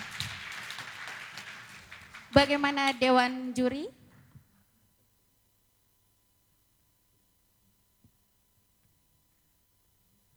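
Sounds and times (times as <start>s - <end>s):
crowd applauding: 0.0s - 3.9s
speech: 2.4s - 4.0s.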